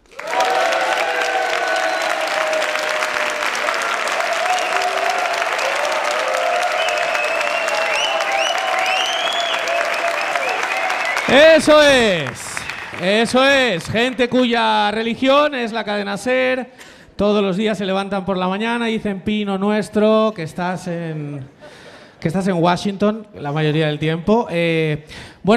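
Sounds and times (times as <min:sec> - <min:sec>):
live audience applauding at a comedy talk show in a theatre hall: 0:00.0 - 0:14.6
loud shout: 0:00.1 - 0:13.1
speech: 0:11.3 - 0:12.4, 0:13.0 - 0:21.6, 0:22.2 - 0:25.5.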